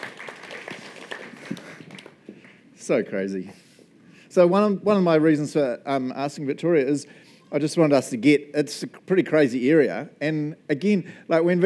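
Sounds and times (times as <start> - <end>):
hand clapping: 0.0 - 2.6
speech: 2.9 - 3.6, 4.4 - 11.6.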